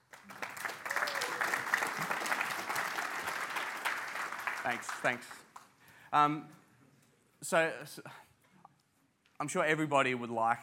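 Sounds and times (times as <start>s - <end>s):
audience applause: 0.0s - 5.7s
speech: 4.6s - 5.4s, 6.1s - 6.6s, 7.4s - 8.2s, 9.4s - 10.6s.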